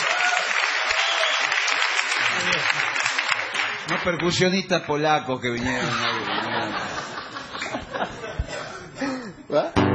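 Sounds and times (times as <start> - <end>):
steady applause from a group: 0.0 - 5.1
laughter: 2.3 - 3.0, 5.6 - 9.7
speech: 3.9 - 7.1.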